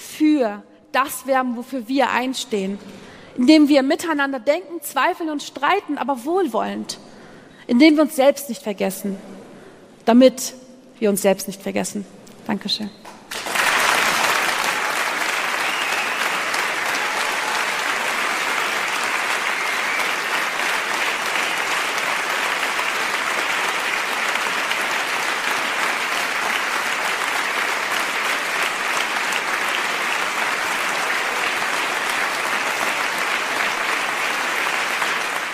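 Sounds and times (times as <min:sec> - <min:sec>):
speech: 0:00.3 - 0:07.1, 0:07.7 - 0:09.4, 0:10.1 - 0:13.1
audience applause: 0:13.3 - 0:35.5.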